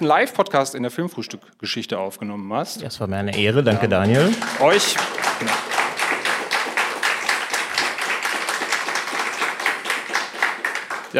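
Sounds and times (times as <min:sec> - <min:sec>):
speech: 0:00.0 - 0:05.7
live audience clapping: 0:03.2 - 0:11.1.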